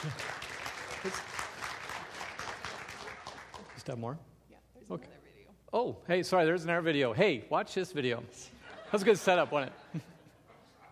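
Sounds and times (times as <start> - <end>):
speech: 0.0 - 0.3, 1.0 - 1.4, 3.9 - 4.3, 4.9 - 10.1
applause: 0.0 - 4.0
laughter: 8.4 - 10.8.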